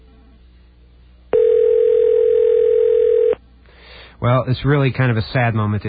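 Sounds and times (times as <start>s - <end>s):
telephone ringing unanswered inside the Washington Monument: 1.3s - 3.4s
speech: 4.2s - 5.8s.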